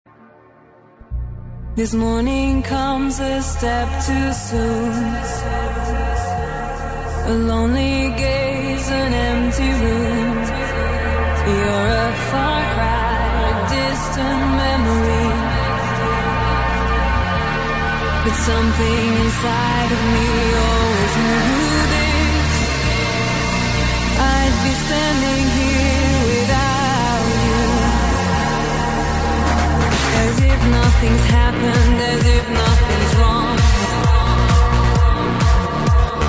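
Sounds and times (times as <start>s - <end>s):
progressive trance music: 0.1s - 36.2s.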